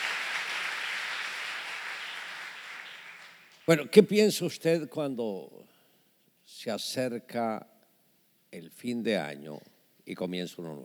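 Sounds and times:
audience applause: 0.0s - 3.8s
speech: 3.7s - 5.7s, 6.5s - 7.7s, 8.5s - 10.8s.

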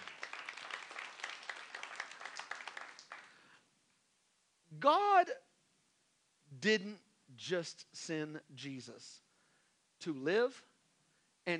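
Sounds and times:
audience clapping hands: 0.0s - 3.6s
speech: 4.8s - 5.4s, 6.6s - 9.2s, 10.0s - 10.7s.

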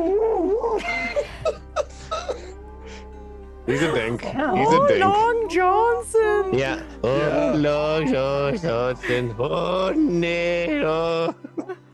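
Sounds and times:
laughter: 0.0s - 11.9s
cat yowling and moaning: 2.1s - 8.6s
speech: 3.7s - 11.7s.

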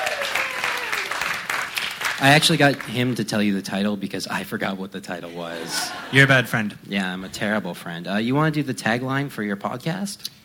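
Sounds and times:
audience applause: 0.0s - 3.0s
speech: 2.2s - 10.4s
laughter: 5.2s - 6.6s.

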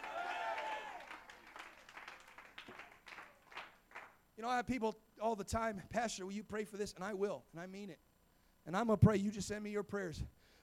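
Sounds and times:
audience applause: 0.0s - 4.2s
speech: 4.4s - 8.1s, 8.7s - 10.4s.

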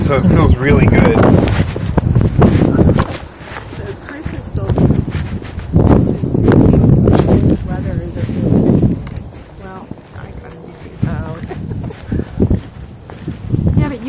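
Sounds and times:
wind at a cemetery buffeting the microphone: 0.0s - 14.0s
speech: 0.1s - 1.8s.

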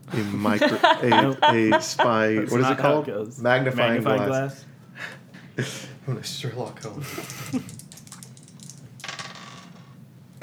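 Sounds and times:
laughter: 0.0s - 3.1s, 5.0s - 8.0s
speech: 0.1s - 7.8s
dice rolling on a hard tabletop: 7.6s - 10.0s.

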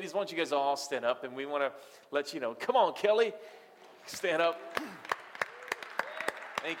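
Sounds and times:
speech: 0.0s - 5.1s
audience applause: 4.7s - 6.7s.

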